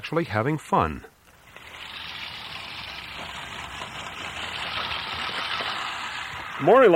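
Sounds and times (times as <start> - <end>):
speech: 0.0 - 1.1, 6.6 - 6.9
old-fashioned manual push lawnmower mowing grass: 1.3 - 6.7.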